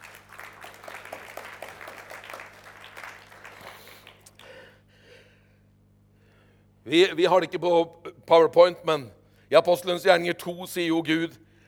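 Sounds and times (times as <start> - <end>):
audience applause: 0.0 - 4.7
speech: 6.9 - 11.4.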